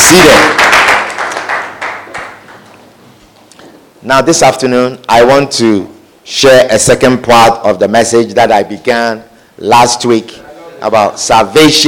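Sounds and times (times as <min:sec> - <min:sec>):
audience clapping hands: 0:00.0 - 0:02.8
speech: 0:00.1 - 0:00.5, 0:04.1 - 0:11.8.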